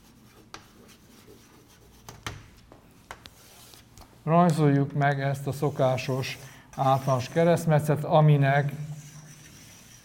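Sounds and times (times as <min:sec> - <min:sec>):
marker or chalk drawing a stress-distribution diagram on a board: 0:00.0 - 0:02.4, 0:05.6 - 0:07.7, 0:08.6 - 0:10.0
sharper taps and rubs: 0:00.4 - 0:04.6
speech: 0:04.2 - 0:08.9.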